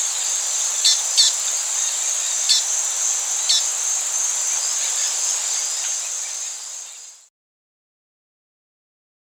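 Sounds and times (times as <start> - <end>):
Black-and-white Seedeater in Ecuador: 0.0 - 7.2.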